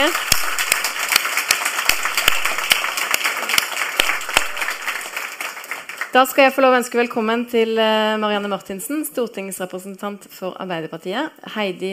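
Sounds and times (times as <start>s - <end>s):
audience applause: 0.0s - 6.2s
speech: 6.1s - 11.9s.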